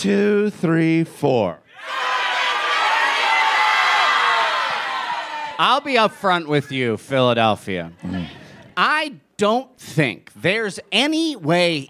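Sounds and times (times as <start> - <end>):
speech: 0.0 - 1.6, 5.6 - 11.8
large audience crowd yelling their full names: 1.7 - 6.2.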